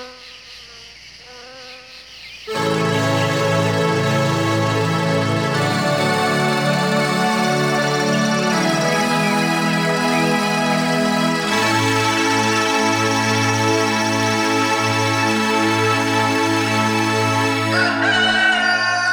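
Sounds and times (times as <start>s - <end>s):
instrumental music: 2.5s - 18.9s.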